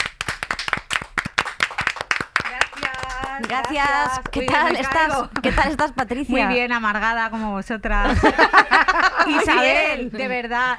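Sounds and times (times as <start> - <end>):
audience applause: 0.0 - 5.0
speech: 3.4 - 10.7
laughter: 8.0 - 10.1.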